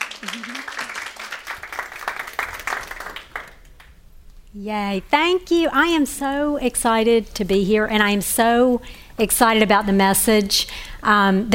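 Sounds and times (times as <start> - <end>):
audience applause welcoming a speaker at a women's ministry gathering: 0.0 - 3.9
speech: 0.2 - 0.9, 4.5 - 11.5.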